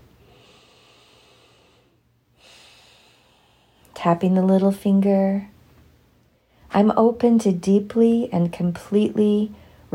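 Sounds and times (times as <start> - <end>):
deep breath during a tapping relaxation exercise: 0.1 - 3.9
speech: 4.0 - 5.5, 6.8 - 9.9.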